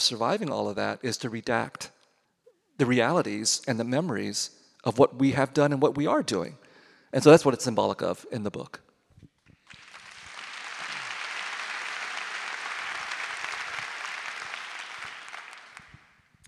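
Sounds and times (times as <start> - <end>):
speech: 0.0 - 1.9, 2.8 - 8.8
audience applause: 9.6 - 16.4.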